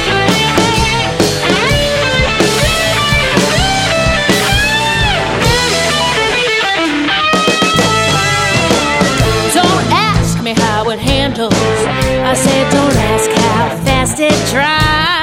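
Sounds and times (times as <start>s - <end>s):
blues band playing: 0.0s - 15.2s.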